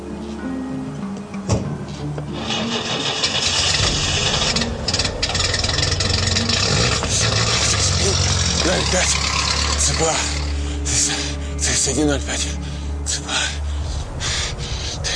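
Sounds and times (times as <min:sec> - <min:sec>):
Volga car engine starting and running as a couple drive away from an airport training centre: 0:01.2 - 0:15.1
car door shutting: 0:01.4 - 0:01.8
speech: 0:08.9 - 0:09.3, 0:10.0 - 0:10.3, 0:11.8 - 0:13.4.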